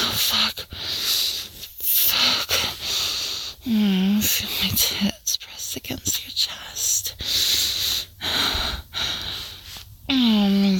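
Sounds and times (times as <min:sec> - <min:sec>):
heavy breathing: 0:00.0 - 0:03.8, 0:07.1 - 0:10.7
speech: 0:00.3 - 0:00.8, 0:03.6 - 0:05.2.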